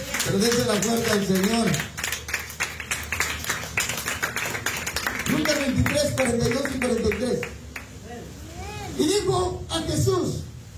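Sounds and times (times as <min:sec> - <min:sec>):
rhythmic audience clapping: 0:00.0 - 0:08.0
speech: 0:00.3 - 0:02.0, 0:05.4 - 0:07.6, 0:09.0 - 0:10.5.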